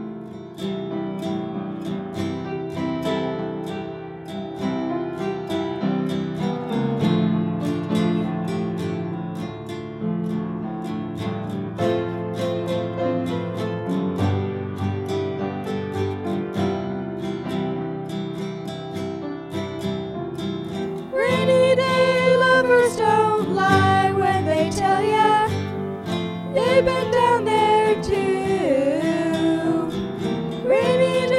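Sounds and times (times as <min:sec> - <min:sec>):
guitar: 0:00.0 - 0:31.3
piano: 0:00.0 - 0:31.3
person singing: 0:21.0 - 0:25.9, 0:26.5 - 0:31.3.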